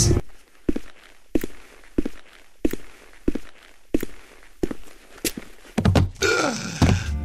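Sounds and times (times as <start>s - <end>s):
heavy footsteps: 0.2s - 7.2s.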